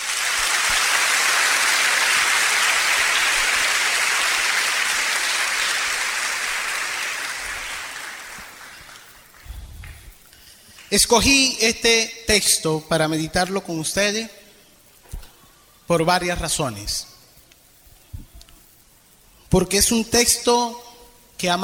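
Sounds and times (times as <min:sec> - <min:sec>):
audience applause: 0:00.0 - 0:10.0
speech: 0:10.9 - 0:14.4, 0:15.9 - 0:17.1, 0:19.5 - 0:20.8, 0:21.4 - 0:21.6.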